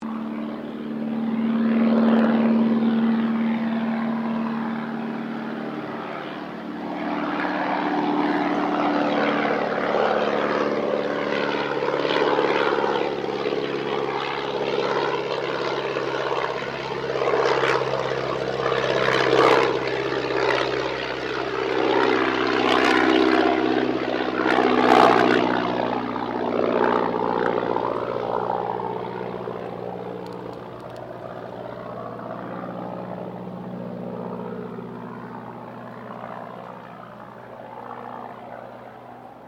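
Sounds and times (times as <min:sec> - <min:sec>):
de Havilland DH82A Tiger Moth aircraft passing: 0:00.0 - 0:39.4.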